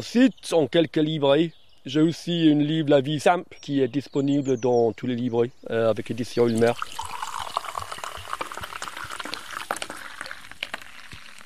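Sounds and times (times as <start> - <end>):
speech: 0.0 - 7.2
foaming drink pouring into a glass: 6.0 - 11.4.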